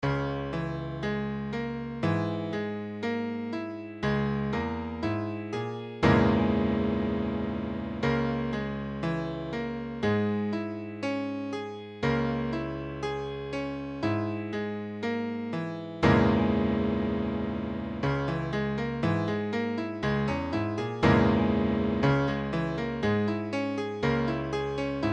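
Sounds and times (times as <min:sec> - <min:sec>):
piano D-flat minor sixth chord: 0:00.0 - 0:25.1.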